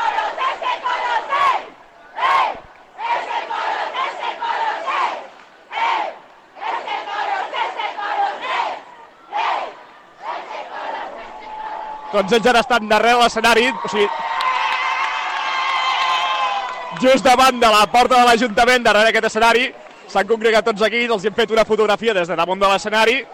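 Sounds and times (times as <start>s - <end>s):
carnival troupe singing and shouting together: 0.0s - 12.4s
crowd cheering: 0.0s - 23.3s
speech: 12.1s - 14.2s, 17.0s - 23.3s.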